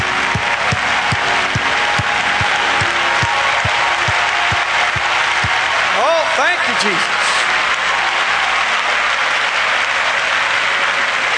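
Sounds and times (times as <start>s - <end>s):
audience clapping: 0.0s - 11.3s
speech: 6.5s - 7.2s.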